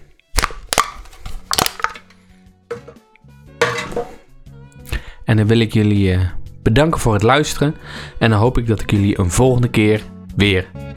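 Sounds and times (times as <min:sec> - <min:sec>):
drink can being cracked open: 0:00.3 - 0:03.0
clinking handling noises: 0:00.8 - 0:03.0, 0:03.6 - 0:04.2
speech: 0:04.0 - 0:04.2, 0:05.3 - 0:10.9.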